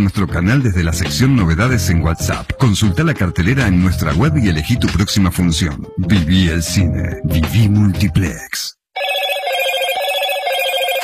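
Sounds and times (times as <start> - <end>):
speech: 0.0 - 8.8
mobile phone ringtone: 9.0 - 11.0.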